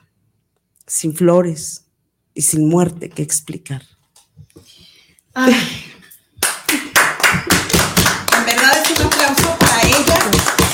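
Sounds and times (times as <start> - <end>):
speech: 0.9 - 4.0, 5.4 - 5.9
audience applause after a poem: 6.6 - 10.7.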